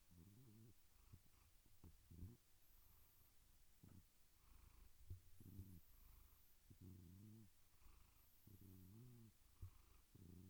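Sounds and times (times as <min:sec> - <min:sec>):
domestic cat purring: 0:00.0 - 0:10.4.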